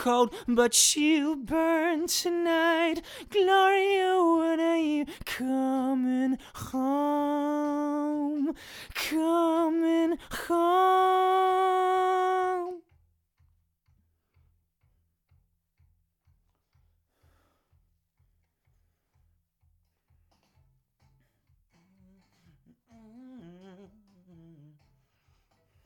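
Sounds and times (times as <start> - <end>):
person singing a Gloria: 0.0 - 12.9, 21.7 - 25.8.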